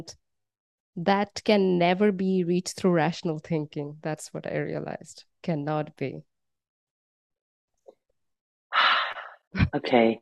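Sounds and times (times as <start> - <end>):
speech: 0.0 - 0.2, 1.0 - 6.3, 9.5 - 10.2
deep inhalation: 8.7 - 9.5.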